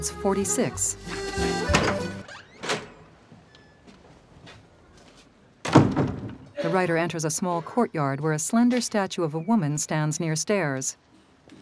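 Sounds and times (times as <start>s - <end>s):
speech: 0.0s - 2.2s, 6.7s - 11.1s
old door with peeling paint being opened in an alley: 1.6s - 3.1s.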